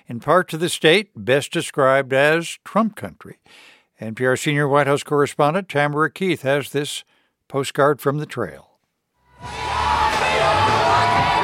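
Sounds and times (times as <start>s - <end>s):
speech: 0.1s - 8.7s, 9.4s - 9.7s
supporters cheering at a campaign rally outside Johnstown: 9.3s - 11.4s.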